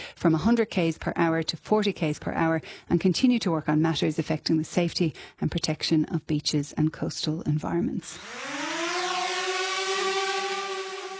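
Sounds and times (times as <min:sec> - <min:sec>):
speech: 0:00.2 - 0:08.8
drone motor buzzing overhead: 0:08.2 - 0:11.1.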